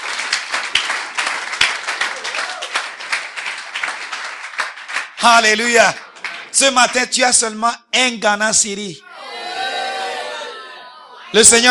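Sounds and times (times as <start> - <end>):
congregation applauding at a morning church service: 0.0 - 7.4
speech: 5.2 - 9.1, 11.3 - 11.6.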